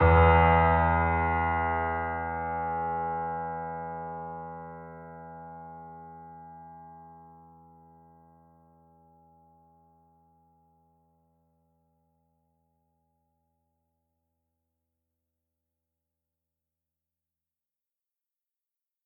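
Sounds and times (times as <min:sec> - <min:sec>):
piano theme: 0:00.0 - 0:06.5.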